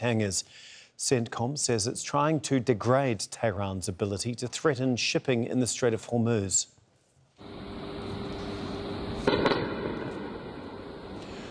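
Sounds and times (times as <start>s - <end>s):
speech: 0.0s - 6.7s
air defence fire bangs and crackles over Tehran: 7.4s - 11.5s
air defence fire rumble over Tehran at night: 7.4s - 11.5s.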